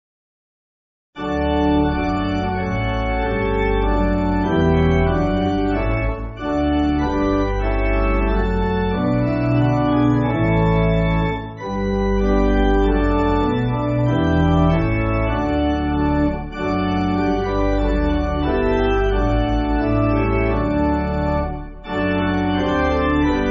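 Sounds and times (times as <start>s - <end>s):
pipe organ backing for churches: 1.2s - 23.4s.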